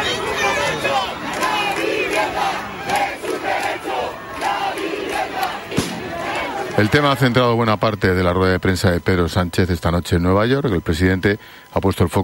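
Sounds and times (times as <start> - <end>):
protest crowd chanting: 0.0 - 7.8
sharp crack: 5.7 - 6.4
speech: 6.8 - 12.2.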